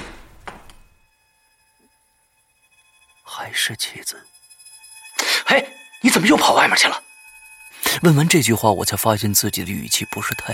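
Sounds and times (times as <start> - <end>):
front door being opened: 0.0 - 1.0
speech: 3.4 - 4.4, 5.5 - 7.0, 7.9 - 10.5.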